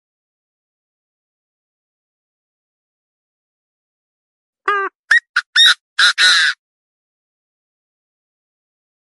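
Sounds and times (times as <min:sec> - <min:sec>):
partridge calling: 0:04.7 - 0:06.6.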